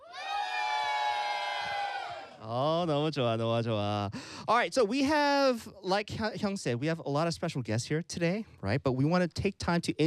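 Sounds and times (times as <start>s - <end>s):
audience at a live event cheering and shouting on cue: 0.0s - 2.5s
speech: 2.4s - 10.0s.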